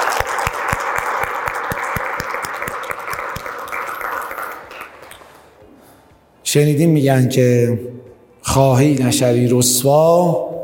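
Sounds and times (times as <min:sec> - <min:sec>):
audience clapping: 0:00.0 - 0:05.6
speech: 0:06.5 - 0:10.5.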